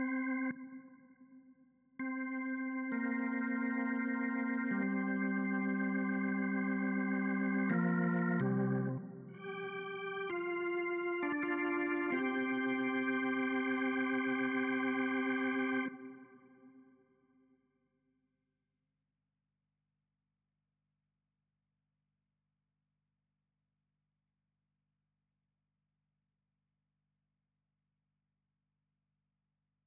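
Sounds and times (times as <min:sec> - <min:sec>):
synths and keys: 0:00.0 - 0:01.1, 0:02.0 - 0:16.8.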